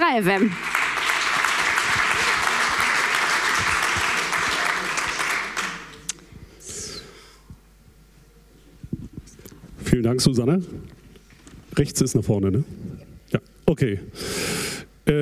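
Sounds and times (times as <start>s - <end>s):
speech: 0.1s - 0.8s, 10.0s - 11.0s, 11.8s - 15.2s
audience applause: 0.2s - 6.1s.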